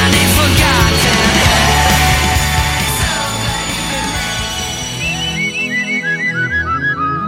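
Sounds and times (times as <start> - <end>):
whistle: 0.1 - 7.2.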